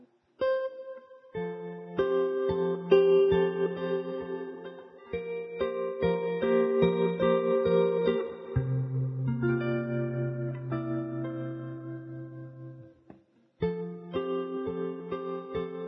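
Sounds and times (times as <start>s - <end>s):
electric guitar melody: 0.0s - 15.8s.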